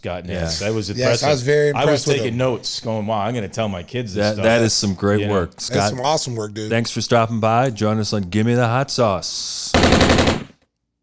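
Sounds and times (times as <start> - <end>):
speech: 0.0 - 10.4
laughter: 0.3 - 6.9
rifle gunfire sound effect: 9.8 - 10.5.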